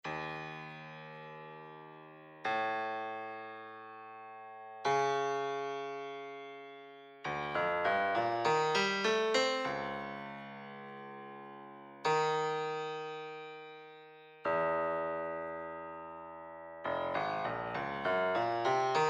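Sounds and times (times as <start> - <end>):
70s grand piano: 0.1 - 19.0.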